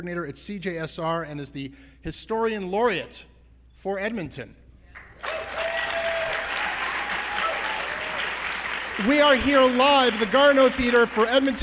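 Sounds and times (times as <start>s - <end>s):
speech: 0.0s - 4.6s, 9.0s - 11.6s
audience applause: 5.0s - 11.6s.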